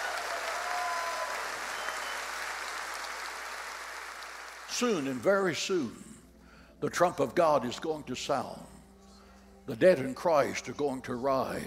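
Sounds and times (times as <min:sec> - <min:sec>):
audience applause: 0:00.0 - 0:05.1
speech: 0:04.8 - 0:06.1, 0:06.8 - 0:08.8, 0:09.7 - 0:11.6.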